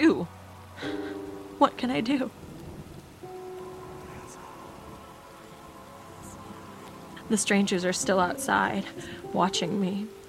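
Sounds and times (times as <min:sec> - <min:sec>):
steady rain pattering against a window: 0:00.0 - 0:10.2
low rumble of thunder: 0:00.9 - 0:09.5
speech: 0:01.6 - 0:02.4, 0:07.3 - 0:10.2
faint sustained tone: 0:03.2 - 0:09.4.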